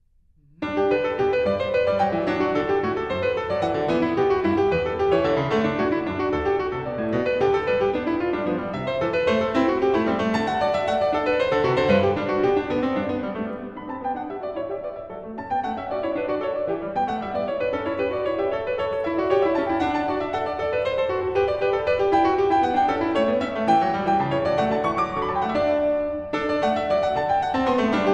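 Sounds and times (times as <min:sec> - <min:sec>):
classical allegro piece: 0:00.0 - 0:28.1.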